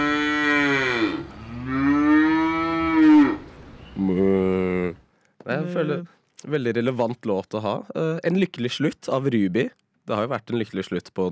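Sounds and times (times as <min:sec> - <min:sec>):
cows mooing: 0:00.0 - 0:03.5
speech: 0:05.7 - 0:11.3.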